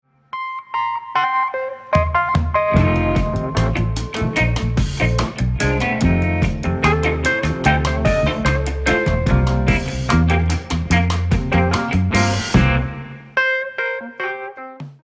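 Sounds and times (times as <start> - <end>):
jazz music: 0.4 - 15.0.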